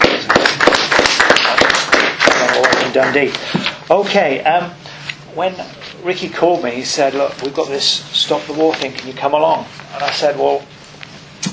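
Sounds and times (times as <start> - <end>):
small crowd applauding a speaker at a stop-the-war event: 0.0 - 3.4
speech: 3.0 - 10.7.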